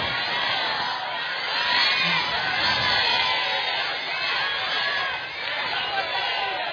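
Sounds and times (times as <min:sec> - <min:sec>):
large crowd loudly reciting salawat, the blessing on Prophet Muhammad: 0:00.0 - 0:06.7.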